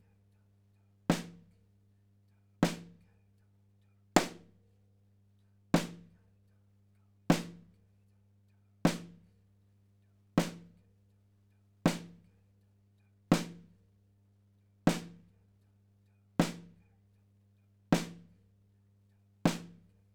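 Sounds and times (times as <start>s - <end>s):
kick drum: 1.1s - 1.5s, 8.9s - 9.3s, 10.4s - 10.8s, 11.9s - 12.3s, 13.3s - 13.8s, 14.9s - 15.3s, 16.4s - 16.9s, 18.0s - 18.4s, 19.5s - 19.9s
snare drum: 4.2s - 4.5s, 5.8s - 6.1s, 7.3s - 7.6s, 8.9s - 9.2s, 10.4s - 10.8s, 11.9s - 12.3s, 13.3s - 13.7s, 14.9s - 15.2s, 16.4s - 16.8s, 18.0s - 18.3s, 19.5s - 19.9s.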